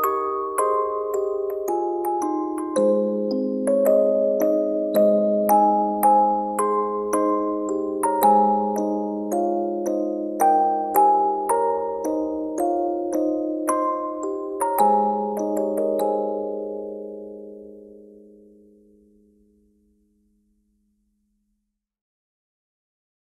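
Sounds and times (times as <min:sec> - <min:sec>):
music box melody: 0:00.0 - 0:18.5.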